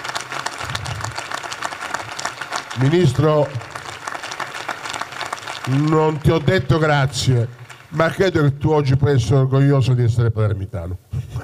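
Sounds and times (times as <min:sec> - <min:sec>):
audience applause at a ceremony honouring a departing director: 0:00.0 - 0:08.9
speech: 0:02.8 - 0:03.6, 0:05.7 - 0:11.1.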